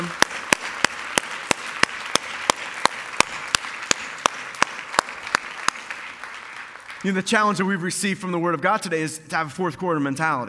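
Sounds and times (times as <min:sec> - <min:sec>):
church audience applauding: 0:00.0 - 0:07.6
speech: 0:07.0 - 0:10.4.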